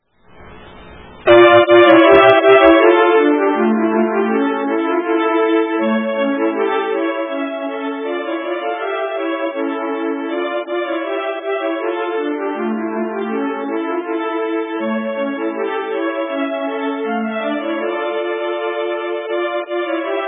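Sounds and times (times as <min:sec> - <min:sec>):
polska folk dance tune: 0:00.4 - 0:20.2.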